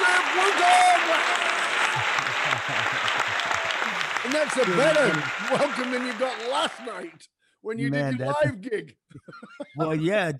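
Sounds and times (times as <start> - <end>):
laughter: 0.0 - 7.1, 7.8 - 10.3
audience applauding to welcome a performer on stage: 0.0 - 7.2
speech: 4.4 - 10.3.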